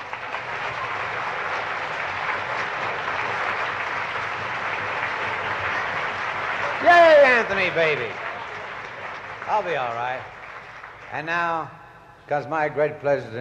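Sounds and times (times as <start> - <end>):
audience applauding an orchestra: 0.0 - 11.6
speech: 6.8 - 8.2, 9.5 - 10.4, 11.1 - 13.3.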